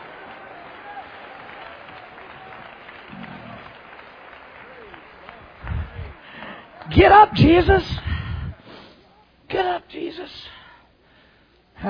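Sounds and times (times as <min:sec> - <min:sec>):
audience clapping hands: 0:00.0 - 0:07.3
speech: 0:06.9 - 0:08.0.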